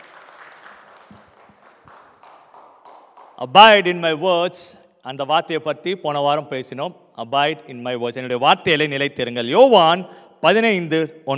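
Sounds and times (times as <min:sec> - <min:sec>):
audience clapping: 0:00.0 - 0:03.8
speech: 0:03.4 - 0:11.3.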